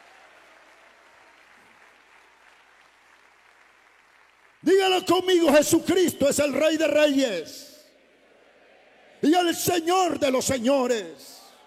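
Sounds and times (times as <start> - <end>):
crowd applauding: 0.0 - 5.9
speech: 4.6 - 7.7, 9.2 - 11.3.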